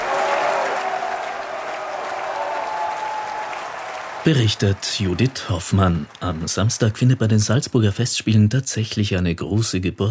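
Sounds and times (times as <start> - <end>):
opera audience booing: 0.0 - 7.2
opera audience cheering: 0.0 - 8.1
speech: 4.2 - 10.0.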